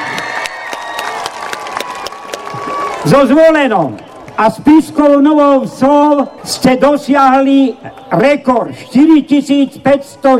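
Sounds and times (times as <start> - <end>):
large crowd clapping at a record-setting csárdás folk dance event in Slovakia: 0.0 - 4.5, 7.8 - 8.2
general crowd noise: 0.0 - 10.3
speech: 3.0 - 10.3.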